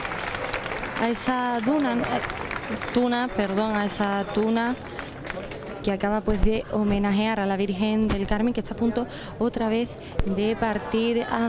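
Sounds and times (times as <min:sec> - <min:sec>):
crowd applauding a tuna music group honouring the Virgen del Carmen: 0:00.0 - 0:06.1
speech: 0:01.0 - 0:11.4.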